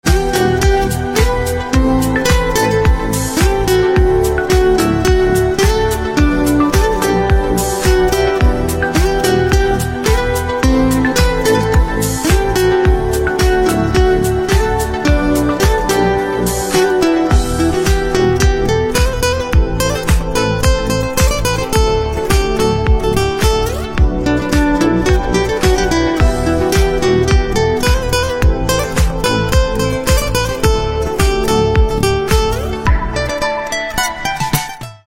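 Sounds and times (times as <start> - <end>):
guitar: 0.0 - 35.0.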